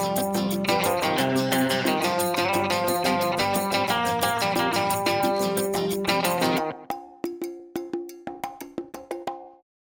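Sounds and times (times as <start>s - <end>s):
latin rock music: 0.0s - 6.9s.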